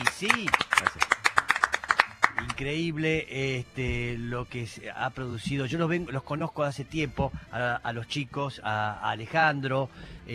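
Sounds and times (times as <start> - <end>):
audience applause: 0.0 - 2.6
speech: 0.2 - 1.1, 2.6 - 10.3.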